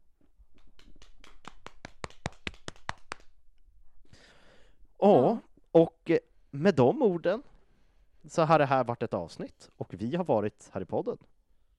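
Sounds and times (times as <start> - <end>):
hand clapping: 0.5 - 3.4
breathy sigh: 4.1 - 5.4
speech: 5.0 - 7.5, 8.2 - 11.3.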